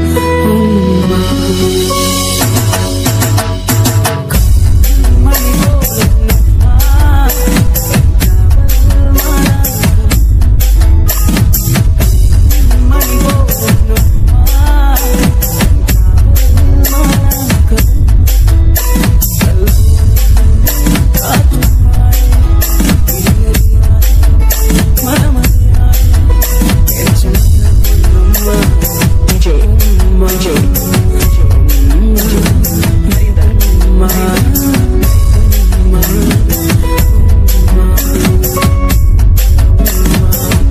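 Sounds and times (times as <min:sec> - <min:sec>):
Tamil background music DJ remix ringtone: 0:00.2 - 0:40.6.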